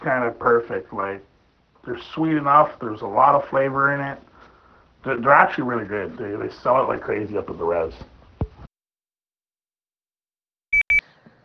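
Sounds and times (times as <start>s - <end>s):
speech: 0.0s - 4.3s, 5.0s - 8.1s
phone text message alert beeps for a message from a brother: 10.8s - 11.0s.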